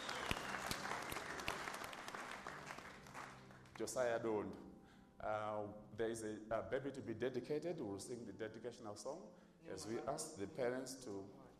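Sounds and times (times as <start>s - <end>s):
audience clapping: 0.0s - 4.1s
speech: 3.8s - 11.4s.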